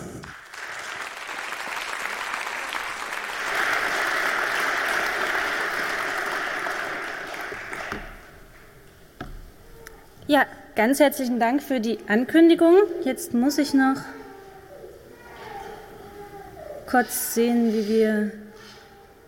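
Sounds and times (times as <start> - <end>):
audience applause on stage: 0.0 - 8.5
speech: 10.3 - 14.2, 16.9 - 18.4.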